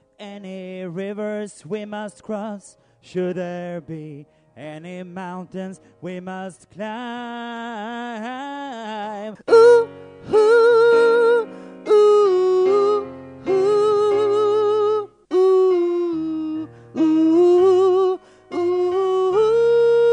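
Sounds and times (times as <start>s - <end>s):
soprano voice: 9.3s - 20.1s.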